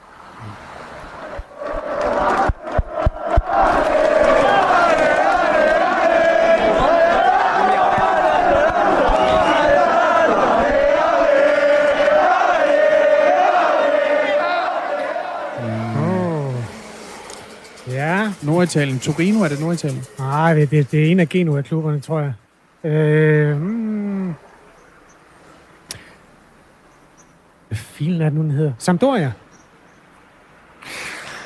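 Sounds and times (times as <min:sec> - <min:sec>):
Italian football fans chanting in stadium: 0:01.2 - 0:17.0
sharp claps: 0:01.3 - 0:05.8
wavering sliding cry: 0:15.6 - 0:19.0
speech: 0:18.6 - 0:23.7, 0:28.0 - 0:29.4.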